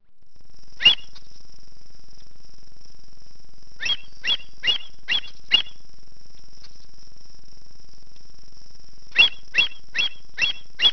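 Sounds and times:
avocet calling: 0:00.8 - 0:01.2, 0:03.8 - 0:05.8, 0:09.1 - 0:10.9.

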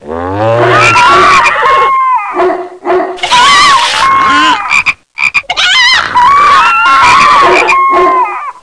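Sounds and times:
animals: 0:00.2 - 0:02.5, 0:03.2 - 0:08.6.

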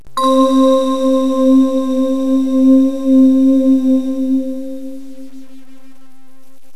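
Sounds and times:
fantasy bells: 0:00.0 - 0:05.6.

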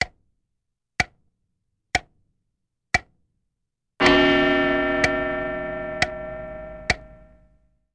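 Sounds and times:
clock: 0:01.0 - 0:01.2, 0:02.0 - 0:02.2, 0:04.0 - 0:07.3.

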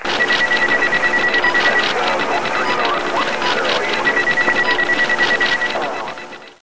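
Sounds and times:
beeps: 0:00.0 - 0:06.6.

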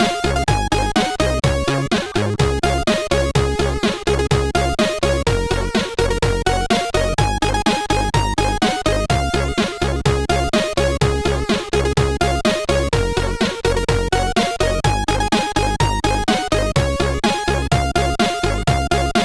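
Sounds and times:
chiptune music: 0:00.0 - 0:19.2.

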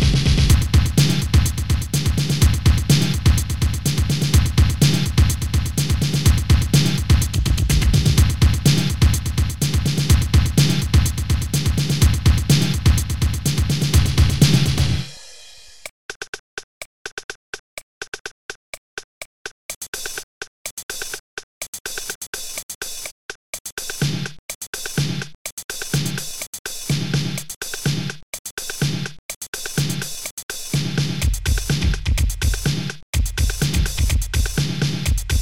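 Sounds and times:
drum solo: 0:00.0 - 0:15.9, 0:23.8 - 0:35.4.

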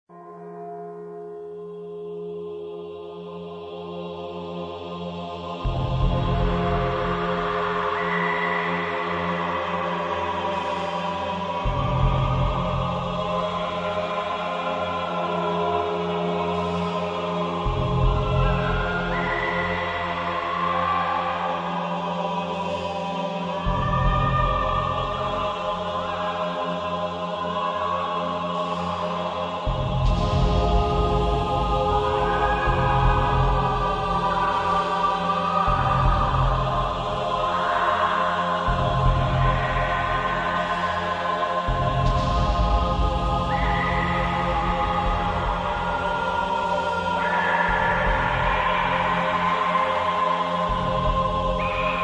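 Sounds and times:
death themed music: 0:03.0 - 0:52.0.

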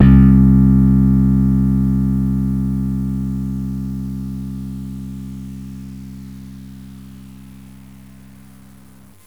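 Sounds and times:
slap bass: 0:00.0 - 0:07.0.

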